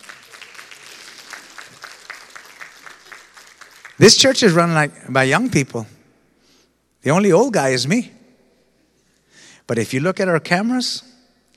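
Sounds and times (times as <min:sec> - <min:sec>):
audience applause: 0:00.0 - 0:04.1
speech: 0:04.0 - 0:06.0, 0:07.0 - 0:08.2, 0:09.7 - 0:11.1.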